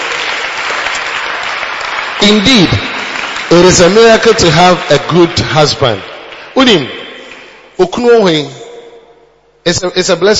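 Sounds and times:
audience clapping: 0.0 - 7.6
speech: 2.2 - 2.9, 3.5 - 7.0, 7.8 - 8.6, 9.6 - 10.3.

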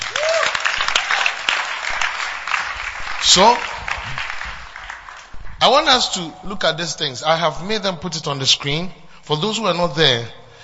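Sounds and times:
audience clapping: 0.0 - 6.1
speech: 3.2 - 3.7, 5.6 - 10.4.

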